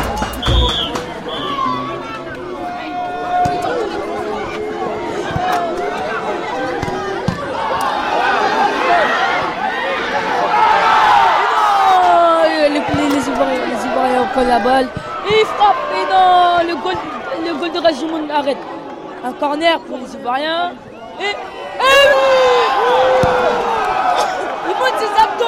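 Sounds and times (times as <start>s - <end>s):
stadium crowd shouting as players enter: 0.0s - 25.4s
speech: 14.6s - 23.7s.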